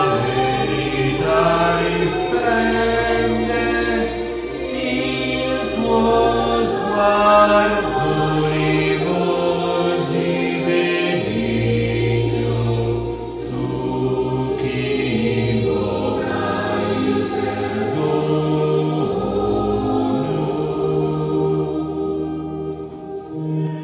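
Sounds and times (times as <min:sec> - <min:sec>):
bass voice singing: 0:00.0 - 0:23.6.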